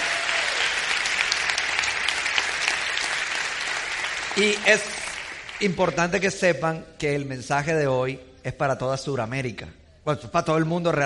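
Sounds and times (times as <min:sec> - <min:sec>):
audience applause: 0:00.0 - 0:06.2
speech: 0:04.4 - 0:05.0, 0:05.6 - 0:11.0.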